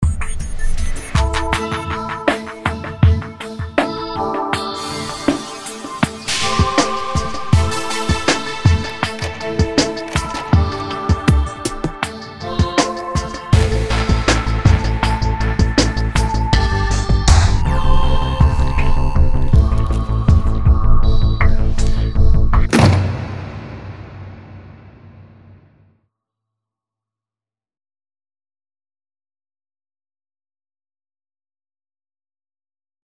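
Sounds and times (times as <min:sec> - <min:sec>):
atmosphere: 0:00.0 - 0:25.8.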